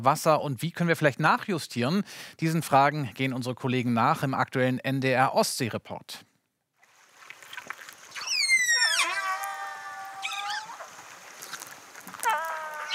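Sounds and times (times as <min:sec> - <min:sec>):
speech: 0:00.0 - 0:06.3
whales communicating underwater: 0:08.1 - 0:11.0, 0:12.1 - 0:12.9.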